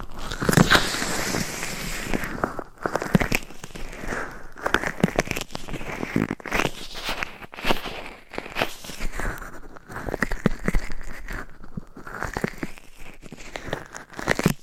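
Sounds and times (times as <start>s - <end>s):
gloved fingers and nails scratching a microphone: 0.0s - 14.6s.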